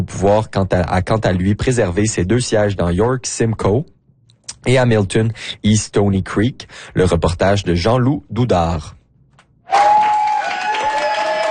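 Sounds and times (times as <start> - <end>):
speech: 0.0 - 4.0, 4.6 - 9.0
colleagues applauding: 9.7 - 11.5.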